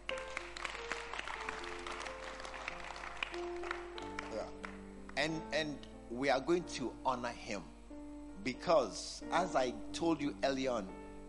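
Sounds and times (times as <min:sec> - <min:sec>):
audience clapping: 0:00.0 - 0:05.2
speech: 0:05.2 - 0:07.8, 0:08.4 - 0:11.0.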